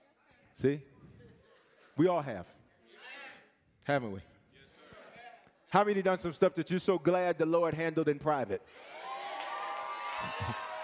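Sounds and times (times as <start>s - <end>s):
speech: 0.6s - 0.9s, 2.0s - 2.6s, 3.9s - 4.3s, 5.7s - 9.0s
audience shouting: 9.0s - 10.8s.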